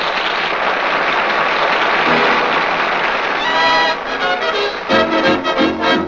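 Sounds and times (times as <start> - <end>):
crowd applauding after a dance: 0.0 - 6.0
band music: 2.1 - 6.0.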